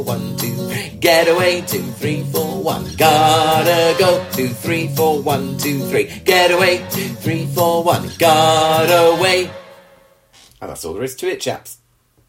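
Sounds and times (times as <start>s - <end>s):
music ending: 0.7s - 10.1s.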